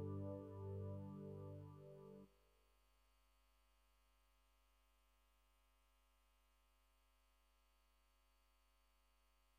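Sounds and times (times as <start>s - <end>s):
electric piano: 0.0s - 2.2s.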